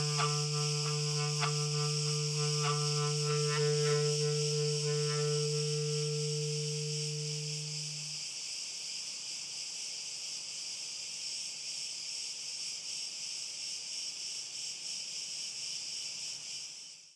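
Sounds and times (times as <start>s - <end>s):
overtone playing: 0.0s - 8.1s
crickets chirping: 0.0s - 17.1s.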